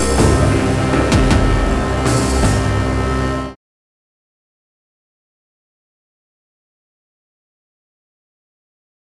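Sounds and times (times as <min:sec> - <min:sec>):
future medieval bar music: 0:00.0 - 0:03.6.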